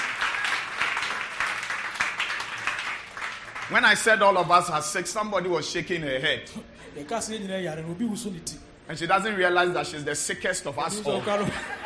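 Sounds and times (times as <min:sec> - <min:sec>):
audience clapping hands: 0:00.0 - 0:04.4
speech: 0:03.7 - 0:11.8
laughter: 0:10.9 - 0:11.8.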